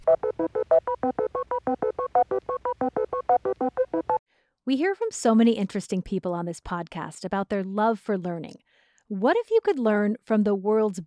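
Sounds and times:
electronic beep-boop tones: 0:00.0 - 0:04.2
speech: 0:04.7 - 0:11.0.

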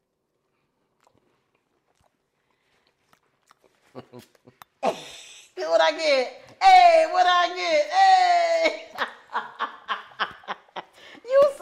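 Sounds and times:
person biting into a cake and chewing: 0:00.3 - 0:04.8
speech: 0:04.0 - 0:08.8.

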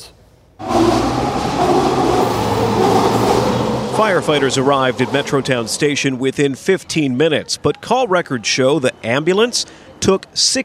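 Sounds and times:
SkyTrain metro train rumbling past at station: 0:00.6 - 0:06.6
speech: 0:04.0 - 0:10.6.

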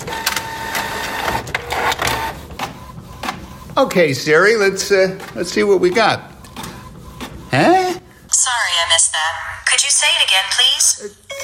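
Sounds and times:
sharp printer clicks as the paper feeds through: 0:00.0 - 0:03.8, 0:04.5 - 0:07.5
printer running with a whirring mechanical drone: 0:00.0 - 0:09.1
speech: 0:03.8 - 0:06.3, 0:07.5 - 0:07.8, 0:09.2 - 0:11.4.

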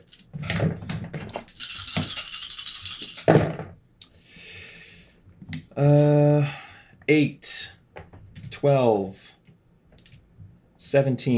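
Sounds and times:
dice rattling in a hand: 0:00.0 - 0:00.3, 0:01.3 - 0:03.4
dice hitting a surface and rolling: 0:01.1 - 0:03.5
speech: 0:05.8 - 0:06.2, 0:07.1 - 0:07.5, 0:08.6 - 0:09.2, 0:10.9 - 0:11.3.

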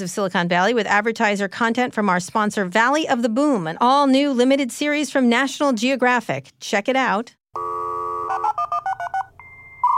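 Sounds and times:
speech: 0:00.0 - 0:07.7
dial tone: 0:07.6 - 0:09.9.

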